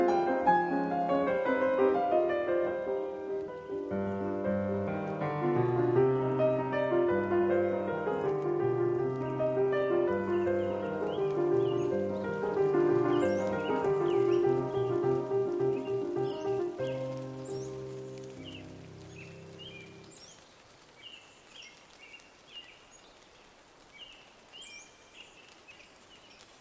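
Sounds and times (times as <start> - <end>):
piano piece in E flat major: 0.0 - 20.4.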